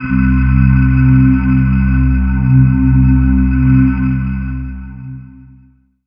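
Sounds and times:
dance synth pad: 0.0 - 5.8.

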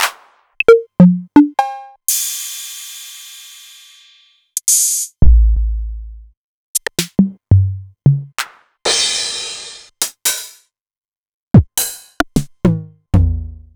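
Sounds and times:
Novation Drumstation drum machine: 0.0 - 2.3, 6.8 - 10.6, 11.6 - 13.7.

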